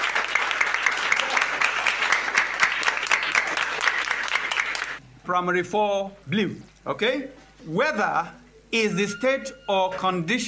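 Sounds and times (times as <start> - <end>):
Primary 4 pupils applauding in a class quiz: 0.0 - 5.0
speech: 5.3 - 10.4.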